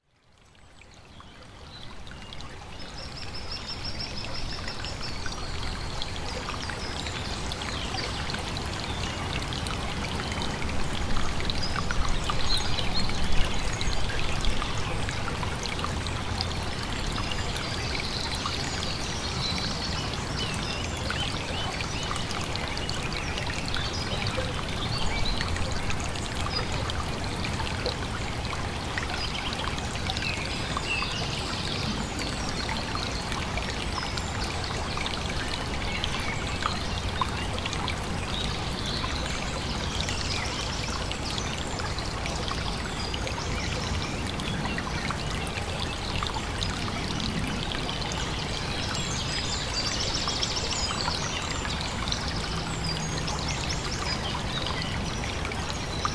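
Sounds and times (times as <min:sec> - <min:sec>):
stream flowing: 0:00.0 - 0:56.1.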